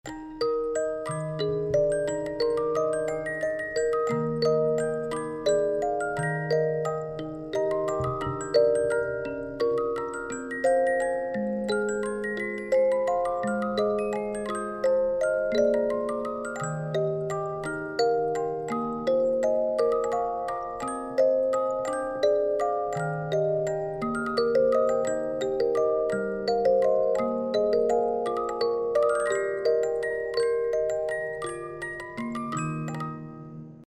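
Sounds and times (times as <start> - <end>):
music box playing a classical waltz: 0.0 - 33.8.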